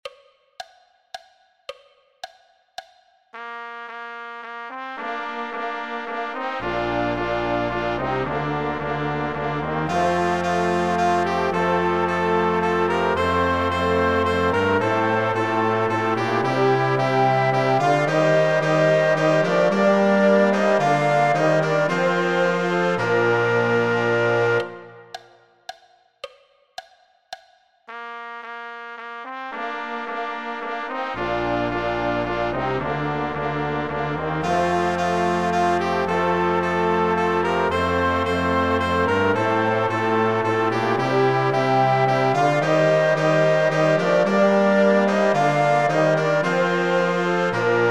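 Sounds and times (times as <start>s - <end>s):
orchestra playing an intrada: 5.0s - 25.1s, 30.6s - 47.8s.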